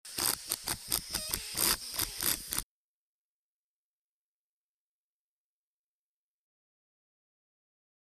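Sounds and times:
air tool chuffs: 0.0s - 2.6s.

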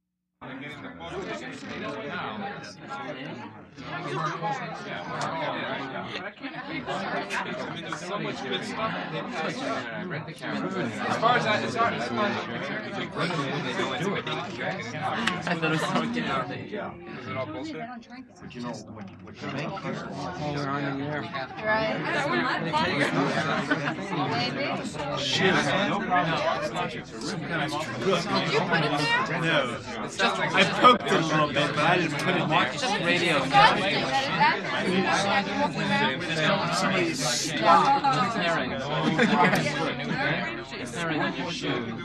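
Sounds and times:
medium party crowd of people: 0.4s - 42.0s
laughter: 13.0s - 16.5s, 21.9s - 41.3s.

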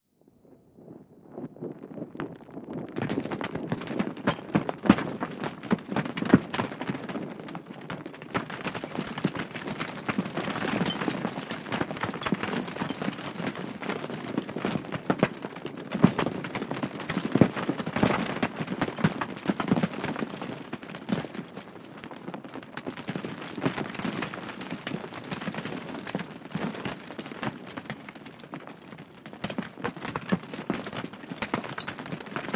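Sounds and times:
avalanche of many large and small rocks and debris falling: 1.4s - 32.5s.

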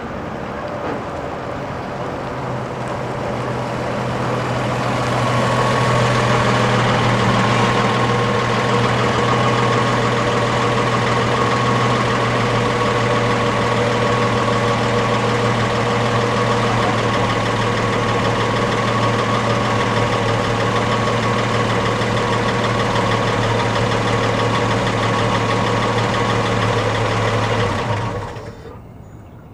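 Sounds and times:
1946 Chevy truck engine idling and stopping: 0.1s - 29.3s.

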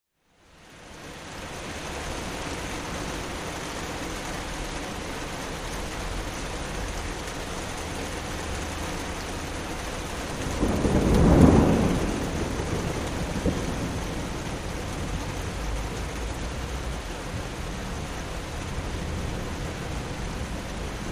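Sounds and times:
rainstorm rain: 0.1s - 21.0s
thunder: 10.4s - 16.0s.

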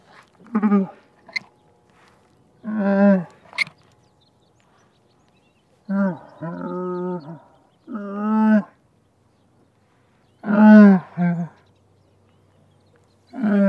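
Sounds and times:
camel groaning: 0.0s - 1.6s, 2.6s - 3.8s, 5.8s - 8.8s, 10.4s - 11.6s, 13.3s - 13.6s
speech: 0.5s - 1.0s.

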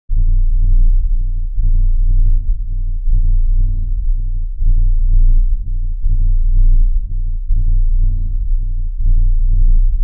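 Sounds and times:
low pulse sci-fi spaceship throb: 0.1s - 10.0s.

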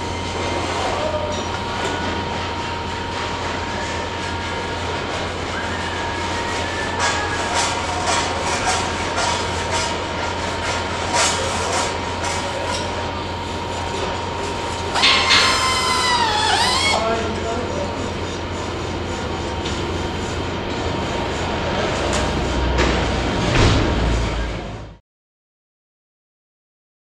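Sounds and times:
factory assembly shop machinery: 0.0s - 25.0s.

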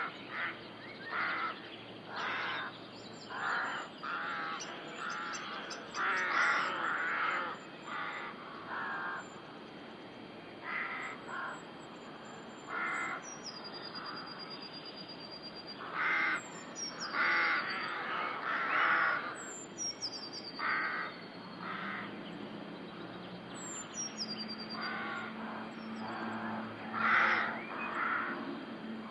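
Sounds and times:
rooks cawing: 0.3s - 9.4s, 10.6s - 11.6s, 12.7s - 13.3s, 15.8s - 16.4s, 17.0s - 19.4s, 20.6s - 22.2s, 24.8s - 28.5s.

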